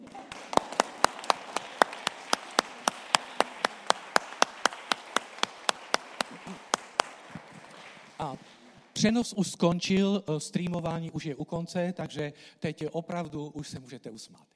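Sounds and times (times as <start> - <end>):
applause: 0.0 - 9.0
speech: 8.2 - 14.5.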